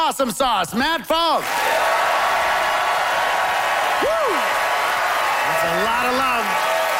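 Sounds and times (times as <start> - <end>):
speech: 0.1 - 2.2, 5.5 - 6.7
cheering shouts: 1.4 - 6.9
crowd applause: 1.4 - 6.9.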